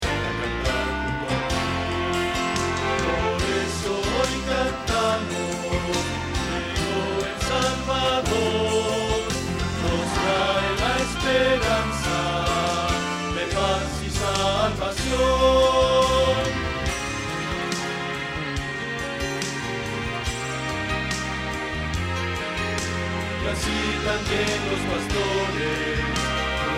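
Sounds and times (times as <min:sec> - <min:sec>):
bass: 0:00.0 - 0:26.7.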